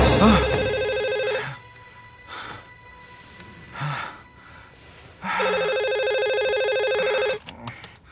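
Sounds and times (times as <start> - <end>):
telephone ringing: 0.1 - 1.6, 5.3 - 7.4.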